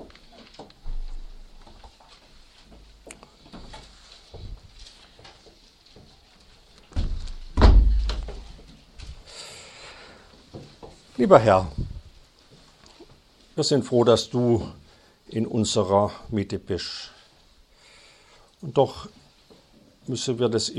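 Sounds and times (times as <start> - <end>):
faint rustling and patter: 0.0 - 14.9, 18.9 - 20.1
speech: 11.2 - 11.8, 13.6 - 17.1, 18.6 - 19.2, 20.0 - 20.7.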